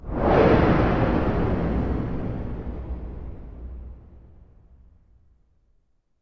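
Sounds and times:
whoosh: 0.0s - 4.9s.

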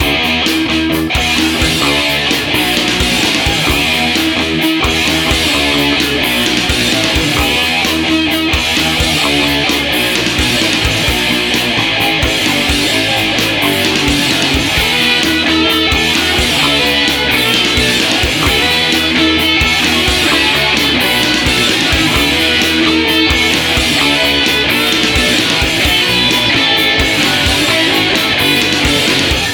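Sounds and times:
hard rock guitar loop: 0.0s - 29.5s.

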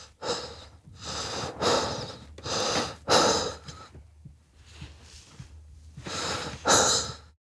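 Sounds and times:
human breathing: 0.0s - 4.0s, 4.6s - 7.3s.

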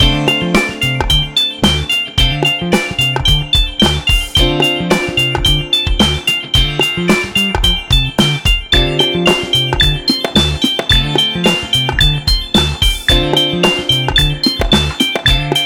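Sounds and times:
funky loop: 0.0s - 15.6s.

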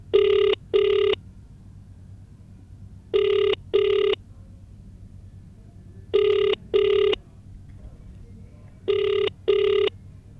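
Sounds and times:
telephone dial tone: 0.1s - 1.2s, 3.1s - 4.2s, 6.1s - 7.2s, 8.9s - 10.0s.

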